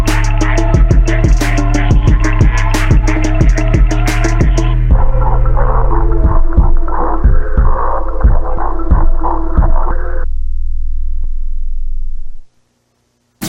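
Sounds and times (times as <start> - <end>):
drift phonk music: 0.0 - 10.3.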